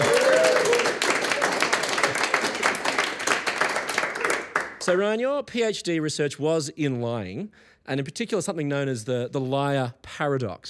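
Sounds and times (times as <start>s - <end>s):
audience applause: 0.0s - 4.8s
speech: 4.9s - 10.6s.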